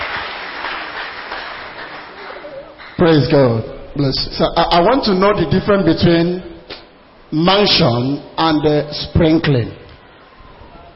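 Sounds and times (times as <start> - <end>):
congregation clapping hands: 0.0 - 3.5
speech: 3.0 - 6.5, 7.3 - 9.8.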